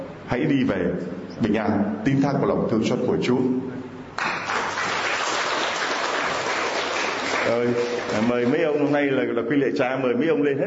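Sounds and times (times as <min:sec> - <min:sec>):
speech: 0:00.3 - 0:04.3, 0:07.5 - 0:10.6
loud hand clapping: 0:04.2 - 0:09.0.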